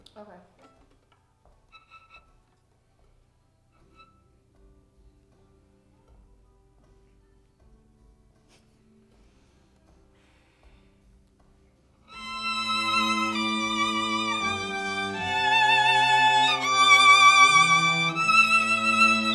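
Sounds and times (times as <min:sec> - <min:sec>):
violin: 0:12.1 - 0:19.3.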